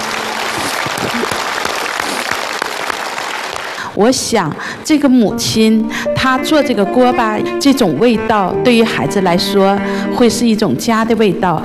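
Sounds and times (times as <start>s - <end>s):
studio audience applause: 0.0s - 3.8s
speech: 4.0s - 11.6s.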